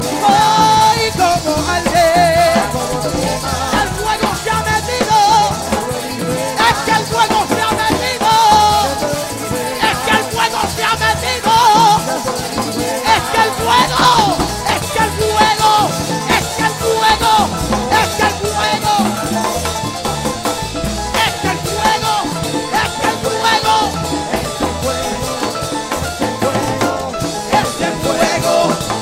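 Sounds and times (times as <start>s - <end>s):
Pentecostal gospel music: 0.0s - 29.0s.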